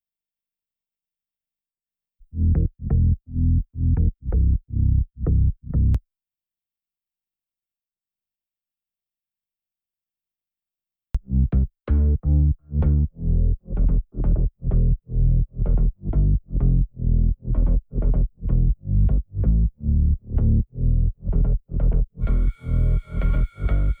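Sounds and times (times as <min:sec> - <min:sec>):
bass: 0:02.2 - 0:06.0, 0:11.2 - 0:23.9.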